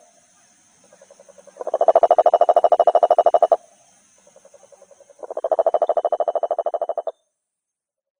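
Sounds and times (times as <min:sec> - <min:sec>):
Rhinella schneideri calling: 0:00.8 - 0:03.6, 0:04.2 - 0:07.2.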